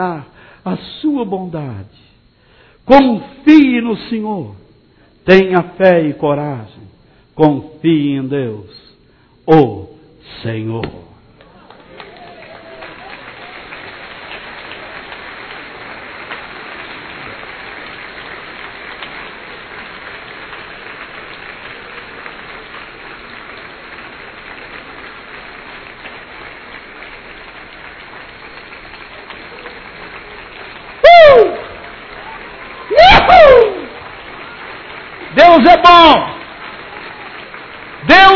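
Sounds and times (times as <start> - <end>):
speech: 0.0 - 2.1, 2.9 - 4.6, 5.2 - 8.8, 9.5 - 11.1
audience applauding: 11.4 - 38.3.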